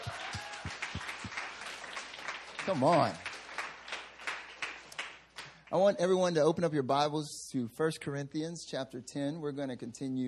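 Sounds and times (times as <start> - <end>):
rising whoop or cheer: 0.0 - 1.0
crowd applauding: 0.0 - 5.7
speech: 2.6 - 3.3, 5.7 - 10.2.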